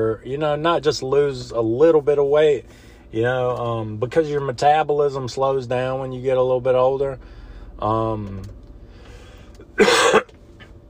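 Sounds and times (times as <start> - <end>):
speech: 0.0 - 8.6, 9.8 - 10.2
loud harsh cough: 9.8 - 10.4
throat clearing: 9.8 - 10.4.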